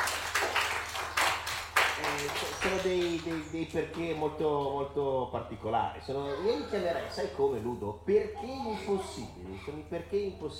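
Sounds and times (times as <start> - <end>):
studio applause: 0.0 - 4.0
speech: 2.2 - 10.5.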